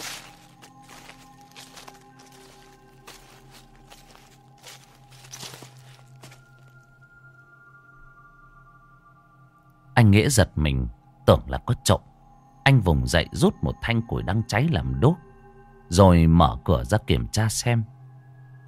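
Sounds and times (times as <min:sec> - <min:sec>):
rustling human footsteps outside a door: 0:00.0 - 0:06.8
speech: 0:10.0 - 0:12.1, 0:12.7 - 0:15.3, 0:15.9 - 0:18.0.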